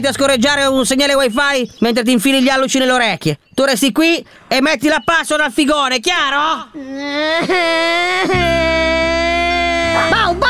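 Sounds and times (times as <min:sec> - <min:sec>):
speech: 0:00.0 - 0:09.1
adult crying and whimpering: 0:06.6 - 0:10.4.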